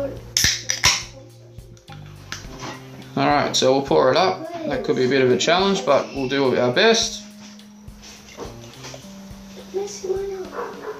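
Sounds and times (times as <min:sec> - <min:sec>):
drink can being cracked open: 0:00.4 - 0:01.1
speech: 0:03.2 - 0:07.2.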